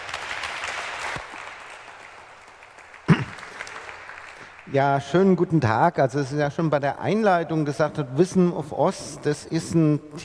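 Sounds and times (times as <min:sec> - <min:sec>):
audience applause: 0:00.0 - 0:05.0
speech: 0:04.7 - 0:10.2.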